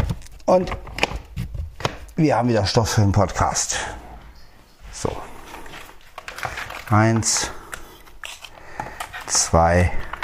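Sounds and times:
speech: 0.5 - 0.9, 2.2 - 4.0, 6.9 - 7.6, 9.3 - 10.0
wet pet food bags crinkling as they are handled: 4.8 - 10.2.

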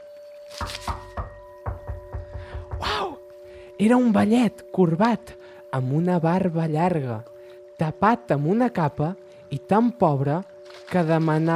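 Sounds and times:
faint tone: 0.0 - 11.5
speech: 0.6 - 1.0, 3.8 - 11.5
knocking on a front door: 0.7 - 3.2.

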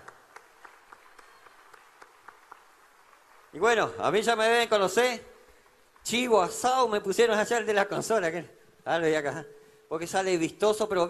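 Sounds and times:
faint audience applause: 0.0 - 4.7
speech: 3.6 - 5.3, 6.1 - 11.0.

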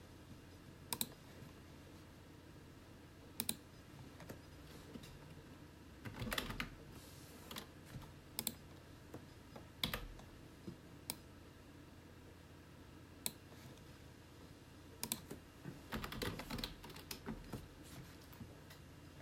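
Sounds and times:
steady low personal computer whir: 0.0 - 19.2
computer mouse clicks: 0.9 - 1.2, 3.4 - 3.6, 8.4 - 8.6
keyboard typing: 0.9 - 1.2, 3.4 - 5.2, 6.0 - 6.8, 7.5 - 8.7, 15.0 - 17.7.

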